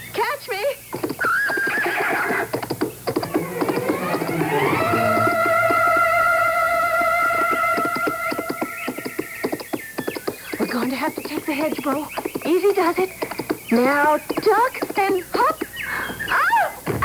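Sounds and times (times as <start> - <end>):
horse hoofbeats: 0.9 - 17.0
horse neighing during jumps: 1.2 - 9.6
speech: 11.5 - 15.6.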